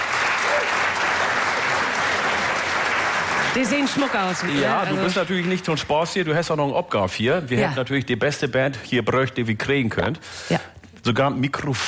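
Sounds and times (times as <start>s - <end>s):
audience applause: 0.0s - 5.9s
speech: 3.6s - 11.8s.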